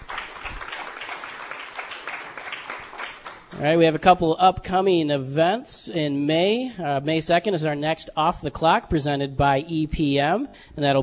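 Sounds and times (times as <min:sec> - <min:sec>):
crowd applauding: 0:00.0 - 0:03.5
speech: 0:03.6 - 0:11.0.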